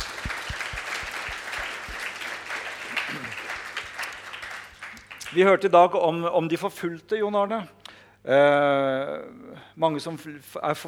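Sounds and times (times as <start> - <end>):
audience applause: 0.0 - 5.4
speech: 5.3 - 10.8.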